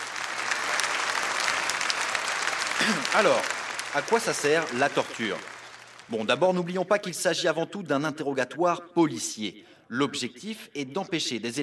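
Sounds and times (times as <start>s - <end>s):
audience applause: 0.0s - 6.4s
speech: 2.8s - 5.5s, 6.1s - 11.6s.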